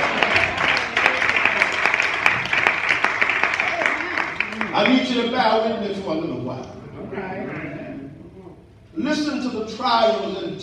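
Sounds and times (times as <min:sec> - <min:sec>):
audience clapping hands: 0:00.0 - 0:05.3
speech: 0:05.1 - 0:07.4, 0:09.0 - 0:10.6.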